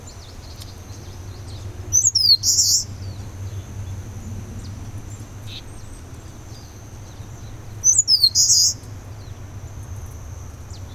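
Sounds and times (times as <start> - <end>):
Eastern crowned warbler song with buzzy trill: 0.0 - 10.9
Eastern crowned warbler chips: 7.9 - 8.8.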